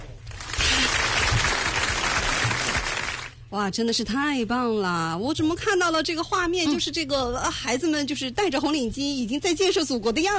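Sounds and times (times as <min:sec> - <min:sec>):
audience applause: 0:00.3 - 0:03.3
speech: 0:03.5 - 0:10.3.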